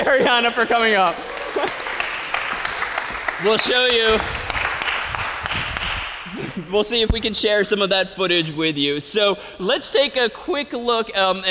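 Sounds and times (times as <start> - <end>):
speech: 0.0 - 1.9, 3.4 - 4.4, 6.6 - 11.4
audience applause: 0.5 - 6.6.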